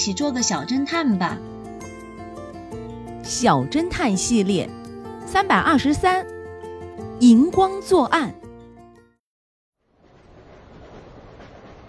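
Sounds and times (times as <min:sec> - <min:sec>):
speech: 0:00.0 - 0:01.5, 0:03.3 - 0:06.3, 0:07.2 - 0:08.4
train running on rails: 0:10.0 - 0:11.8.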